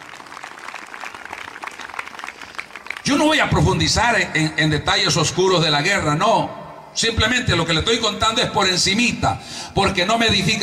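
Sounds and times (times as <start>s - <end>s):
crowd applauding: 0.0s - 3.3s
speech: 3.0s - 10.6s.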